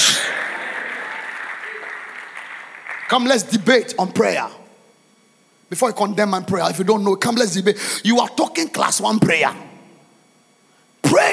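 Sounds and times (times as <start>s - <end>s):
audience clapping: 0.0s - 3.7s
speech: 3.1s - 4.6s, 5.7s - 9.7s, 11.1s - 11.3s.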